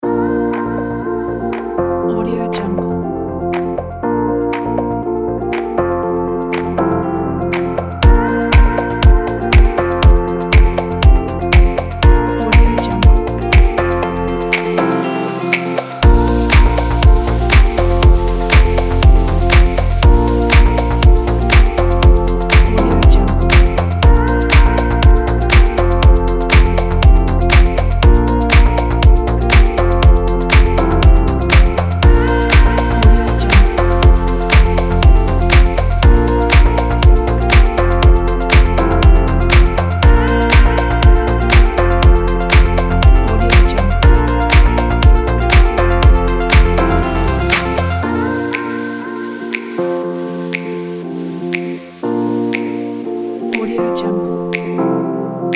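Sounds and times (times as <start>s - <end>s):
fashion summer house music: 0.0s - 54.8s.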